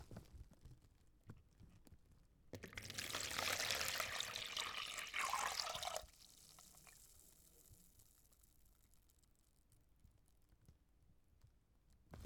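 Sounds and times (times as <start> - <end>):
water: 2.5 - 8.9.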